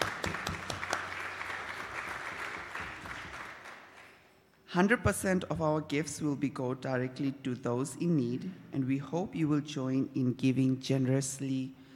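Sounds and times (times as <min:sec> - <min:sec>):
audience applause: 0:00.0 - 0:04.2
speech: 0:04.7 - 0:11.8.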